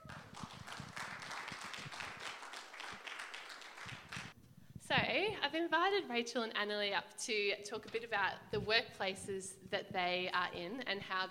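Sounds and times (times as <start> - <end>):
audience clapping: 0.0 - 4.4
speech: 5.1 - 11.2.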